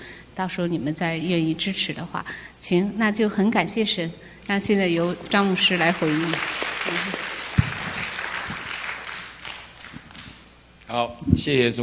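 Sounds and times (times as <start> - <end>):
speech: 0.4 - 7.2, 10.9 - 11.8
audience applause: 4.9 - 10.5.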